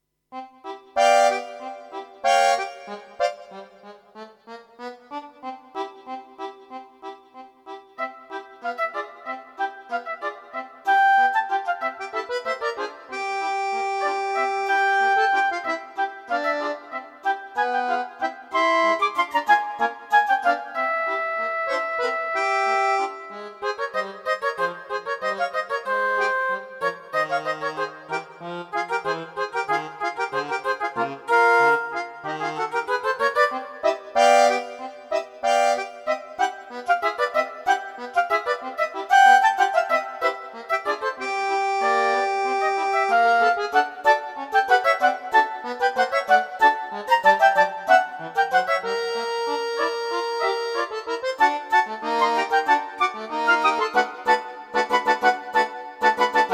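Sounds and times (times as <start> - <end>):
Czech accordion: 0.0 - 56.5
flute: 10.8 - 12.0.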